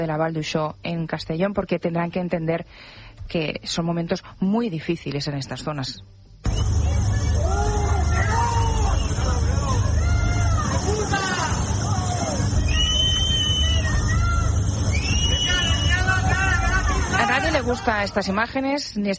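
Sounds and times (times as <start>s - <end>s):
speech: 0.0s - 6.6s, 17.6s - 19.1s
low rumble: 6.4s - 18.5s
angry residents shouting and jeering at arriving politician: 6.5s - 18.4s.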